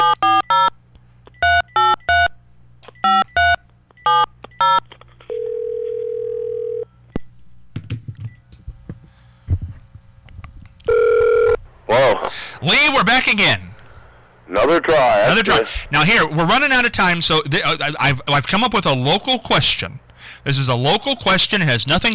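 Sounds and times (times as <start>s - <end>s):
touch-tone telephone dialing beeps: 0.0s - 0.7s, 1.4s - 2.3s, 3.0s - 4.8s
long steady telephone tone: 0.0s - 0.8s, 3.0s - 7.0s, 8.5s - 11.7s
speech: 13.3s - 13.7s, 14.7s - 22.1s.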